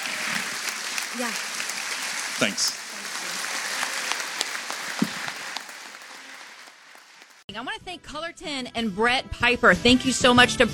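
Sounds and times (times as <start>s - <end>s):
audience applause: 0.0s - 7.5s
speech: 1.2s - 1.6s, 2.4s - 3.2s, 7.5s - 10.7s.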